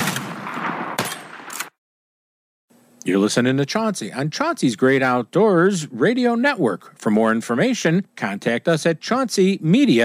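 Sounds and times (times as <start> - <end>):
shotgun fire at sporting clay targets: 0.0 - 1.7
speech: 3.1 - 10.0.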